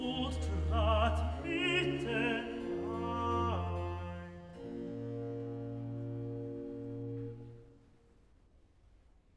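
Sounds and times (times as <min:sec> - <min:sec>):
tenor singing cantata recitative: 0:00.0 - 0:07.2.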